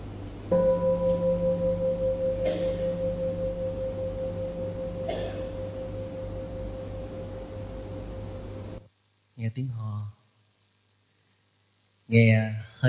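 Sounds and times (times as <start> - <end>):
bell ringing: 0.5 - 8.8
speech: 9.6 - 10.2, 12.1 - 12.8.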